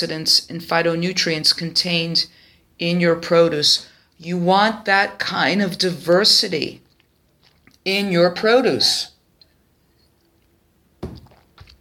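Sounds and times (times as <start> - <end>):
speech: 0.0 - 6.8, 7.8 - 9.1
sip of water: 6.9 - 7.9.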